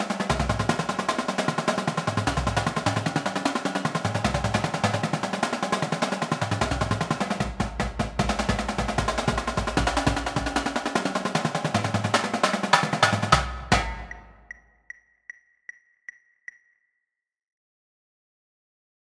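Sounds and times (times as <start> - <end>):
drumline: 0.0 - 14.5.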